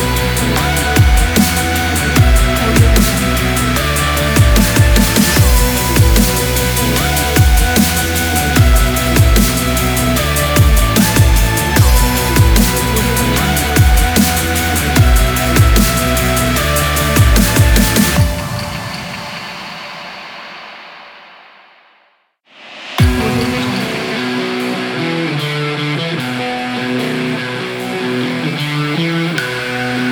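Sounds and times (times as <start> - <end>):
stylish rock dubstep music: 0.0 - 19.5, 23.0 - 30.0.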